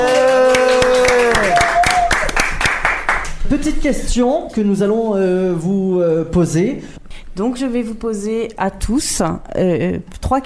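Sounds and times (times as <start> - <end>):
audience applauding: 0.0 - 3.4
speech: 3.5 - 10.4.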